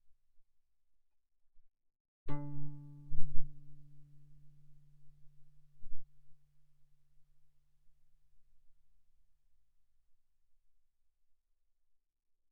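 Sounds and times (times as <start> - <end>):
guitar notes played mezzo forte on the A string: 2.3 - 5.8.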